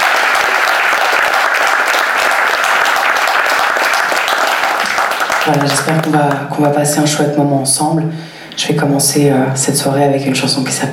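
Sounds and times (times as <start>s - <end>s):
audience applause: 0.0s - 6.5s
speech: 5.5s - 10.9s.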